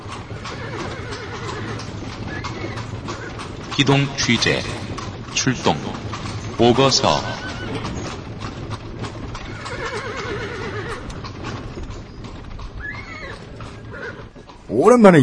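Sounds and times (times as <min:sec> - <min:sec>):
horse hooves clip-clopping: 0:00.0 - 0:15.2
rumbling noise: 0:00.0 - 0:15.2
horse whinny: 0:00.2 - 0:03.5, 0:07.1 - 0:08.2, 0:09.3 - 0:11.7, 0:12.6 - 0:14.5
speech: 0:03.8 - 0:04.8, 0:05.4 - 0:06.0, 0:06.6 - 0:07.9, 0:14.8 - 0:15.2.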